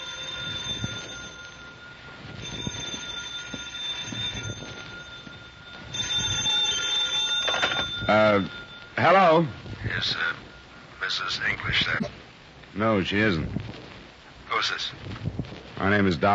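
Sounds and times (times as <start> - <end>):
telephone ringing: 0.0 - 11.6
speech: 8.1 - 10.4, 11.1 - 13.8, 14.6 - 16.3.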